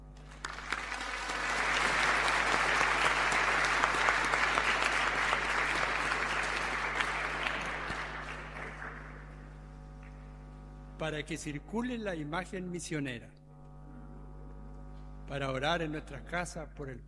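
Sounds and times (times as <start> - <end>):
audience applause: 0.3 - 9.6
speech: 11.1 - 13.4, 15.3 - 17.0.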